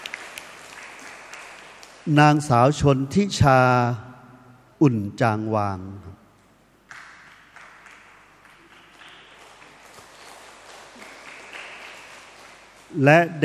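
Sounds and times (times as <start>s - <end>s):
audience applause: 0.0s - 2.0s, 6.9s - 13.0s
speech: 2.0s - 4.1s, 4.8s - 6.2s, 13.0s - 13.4s.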